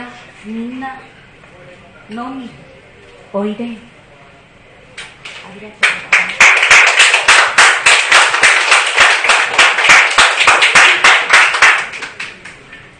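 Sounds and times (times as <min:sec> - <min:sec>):
speech: 0:00.4 - 0:01.2, 0:02.1 - 0:02.7, 0:03.3 - 0:03.9, 0:05.4 - 0:06.4
audience applause: 0:05.8 - 0:12.6.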